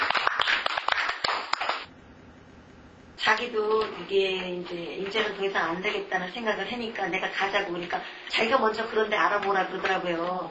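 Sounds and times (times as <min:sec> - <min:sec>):
audience clapping: 0:00.0 - 0:01.9
speech: 0:03.3 - 0:10.4.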